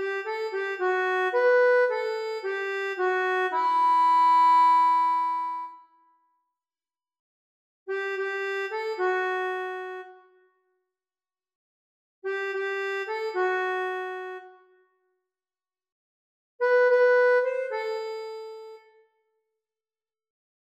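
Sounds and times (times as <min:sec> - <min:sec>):
accordion: 0:00.0 - 0:06.0, 0:07.9 - 0:10.4, 0:12.2 - 0:14.8, 0:16.6 - 0:19.1.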